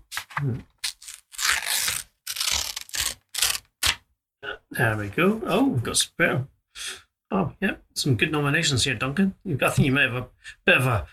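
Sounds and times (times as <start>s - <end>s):
paper tearing as a golden envelope is ripped open: 0.1s - 4.0s
speech: 0.4s - 0.7s, 4.8s - 11.1s.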